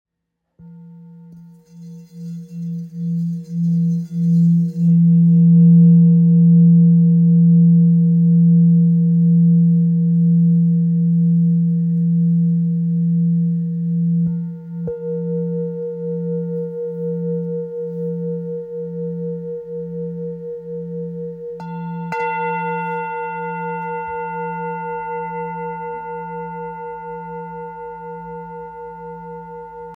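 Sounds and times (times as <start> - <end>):
old F Tibetan singing bowl ringing: 0.6 - 29.9.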